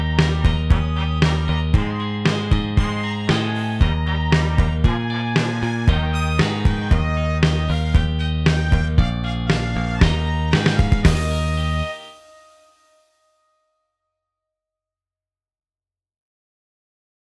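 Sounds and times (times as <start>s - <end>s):
brass music in E flat: 0.0s - 12.8s.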